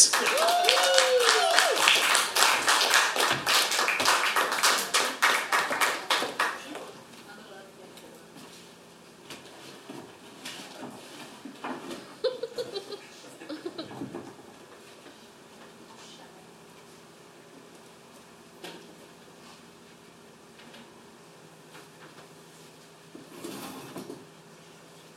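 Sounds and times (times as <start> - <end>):
audience applause welcoming a performer at a music festival: 0.0 - 7.0
laughter: 12.0 - 14.2.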